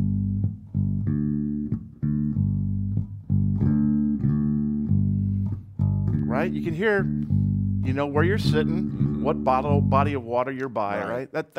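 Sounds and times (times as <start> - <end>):
bass guitar playing a two-note riff: 0.0 - 10.2
speech: 6.4 - 11.5.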